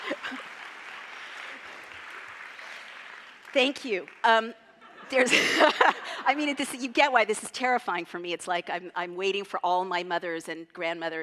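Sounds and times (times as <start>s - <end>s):
laughter: 0.0s - 0.6s, 4.8s - 6.3s
audience applause: 0.0s - 4.4s
speech: 3.6s - 11.2s.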